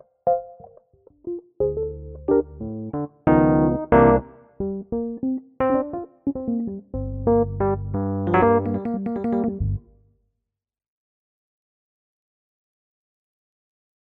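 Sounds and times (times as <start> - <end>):
vintage electric piano played hard: 0.0 - 9.9.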